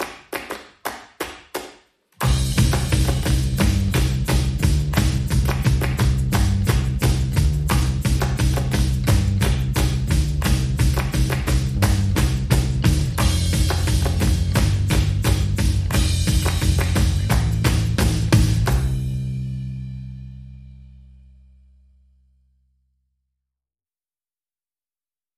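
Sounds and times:
drums: 2.2s - 20.6s
bass: 2.2s - 23.4s.

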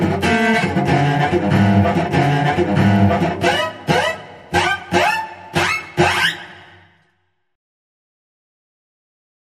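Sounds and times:
tense cello music: 0.0s - 6.8s.

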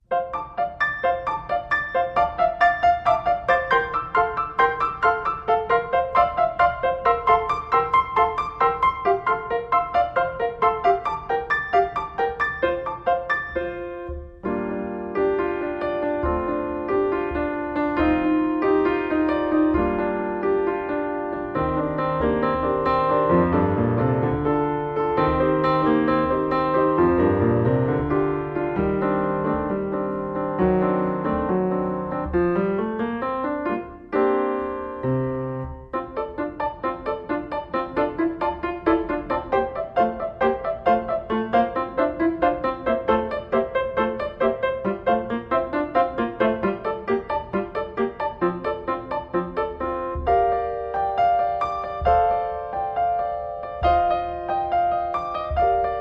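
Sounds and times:
playful music: 0.1s - 56.0s.

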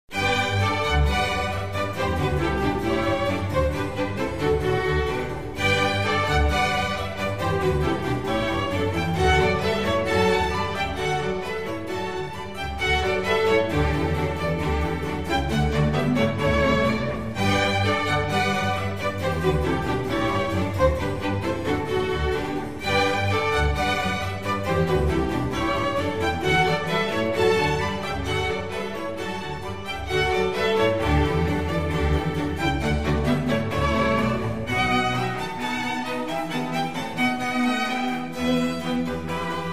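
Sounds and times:
concerto for strings in G major: 0.1s - 39.7s.

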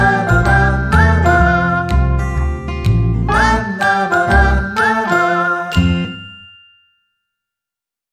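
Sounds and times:
double bass melody: 0.0s - 3.7s
acoustic guitar: 0.0s - 6.2s.

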